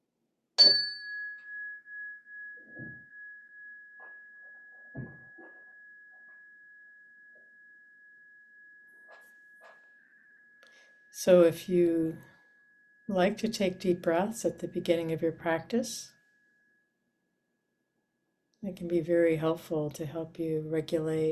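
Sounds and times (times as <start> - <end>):
meditation bell ringing: 0.6 - 15.2, 16.1 - 17.3
speech: 11.2 - 12.3, 13.1 - 16.2, 18.6 - 21.3.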